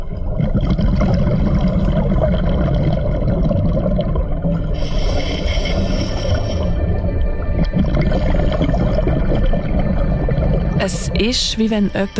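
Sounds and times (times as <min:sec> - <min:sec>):
hissing bubbly exhalation burst underwater: 0:00.4 - 0:07.0, 0:07.7 - 0:10.5
diver breathing underwater through a regulator: 0:04.7 - 0:07.0
speech: 0:11.2 - 0:12.1.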